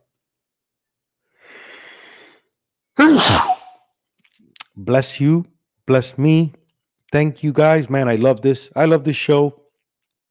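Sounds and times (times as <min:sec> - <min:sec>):
person sneezing: 0:03.0 - 0:03.8
speech: 0:04.8 - 0:09.6.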